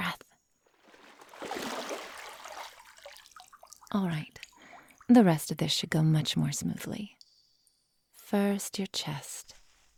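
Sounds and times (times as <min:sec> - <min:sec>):
water rinsing a person off: 0:00.7 - 0:05.2
speech: 0:03.9 - 0:04.4, 0:05.1 - 0:07.2, 0:08.3 - 0:09.5.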